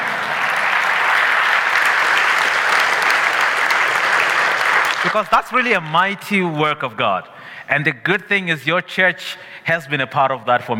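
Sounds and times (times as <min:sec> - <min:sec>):
audience clapping: 0:00.0 - 0:06.5
speech: 0:05.0 - 0:10.7.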